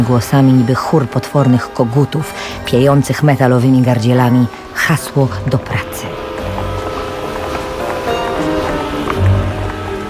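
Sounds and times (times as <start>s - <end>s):
speech: 0.0s - 6.2s
March rain mixed with snow drumming on tin roofs: 6.1s - 10.0s.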